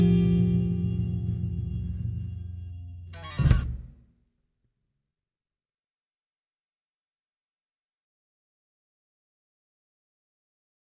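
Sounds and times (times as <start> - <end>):
blues music: 0.0 - 3.9.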